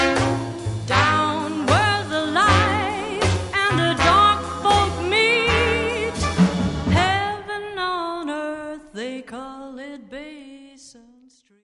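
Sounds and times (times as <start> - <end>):
blues music: 0.0 - 8.2.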